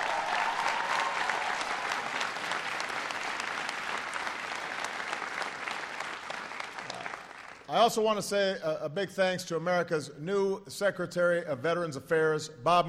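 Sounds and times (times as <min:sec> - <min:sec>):
audience applause: 0:00.0 - 0:07.7
speech: 0:07.7 - 0:12.8.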